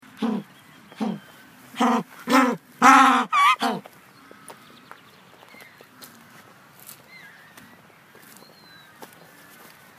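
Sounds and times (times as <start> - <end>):
African penguin braying: 1.8 - 3.9.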